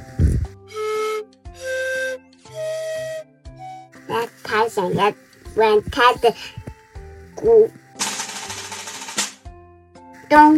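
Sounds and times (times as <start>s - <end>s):
sustained flute notes stepping upward: 0.7s - 4.3s
speech: 4.1s - 6.6s, 7.4s - 7.8s, 10.3s - 10.5s.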